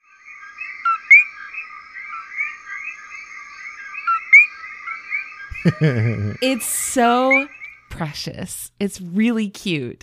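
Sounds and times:
coquí frog call: 0:00.1 - 0:06.6, 0:07.2 - 0:07.9
laughter: 0:05.5 - 0:06.4
speech: 0:05.6 - 0:10.0.

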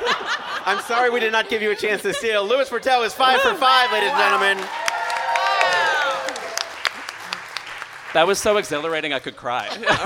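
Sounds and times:
laughter: 0:00.0 - 0:04.6, 0:09.5 - 0:10.0
speech: 0:00.7 - 0:04.8, 0:08.2 - 0:10.0
studio audience applause and cheering: 0:03.2 - 0:09.2
person whooping: 0:03.3 - 0:06.6.

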